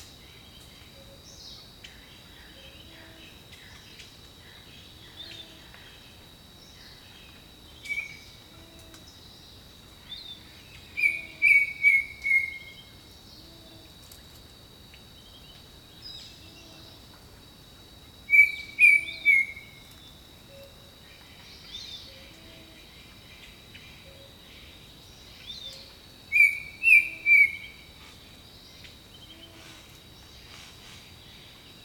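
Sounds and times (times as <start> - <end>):
insect drone: 0.0 - 31.8
jungle birds singing: 26.4 - 27.6.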